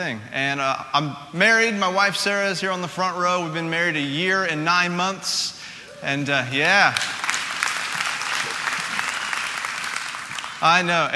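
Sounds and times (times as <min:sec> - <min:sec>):
speech: 0:00.0 - 0:07.2, 0:10.6 - 0:11.1
audience clapping: 0:06.3 - 0:11.1.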